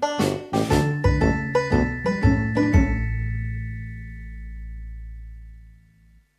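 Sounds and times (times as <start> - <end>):
funny ringtone: 0.2 - 4.2.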